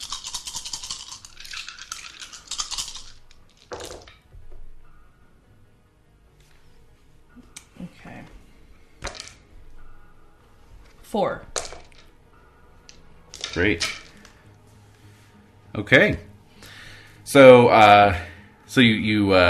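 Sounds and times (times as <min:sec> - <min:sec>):
handful of dice shaken and rolled, rattling and clattering: 0:00.0 - 0:04.1, 0:09.0 - 0:09.4, 0:11.5 - 0:12.1, 0:12.9 - 0:14.4
speech: 0:11.1 - 0:11.5, 0:13.5 - 0:14.0, 0:15.8 - 0:16.2, 0:17.3 - 0:19.4.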